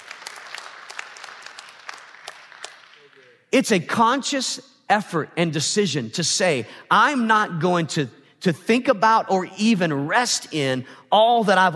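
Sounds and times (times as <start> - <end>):
audience clapping: 0.0 - 3.4
speech: 3.6 - 11.7.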